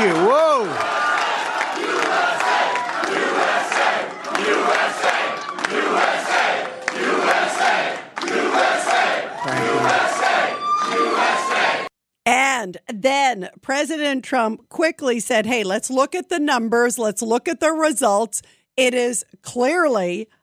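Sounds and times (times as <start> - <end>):
crowd chanting USA to President Trump: 0.6 - 11.9
speech: 13.0 - 20.4.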